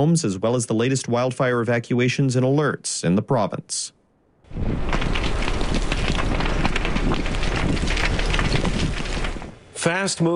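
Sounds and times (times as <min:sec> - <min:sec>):
speech: 0:00.0 - 0:05.0, 0:09.8 - 0:10.3
wind howling near wildfire: 0:04.4 - 0:09.8.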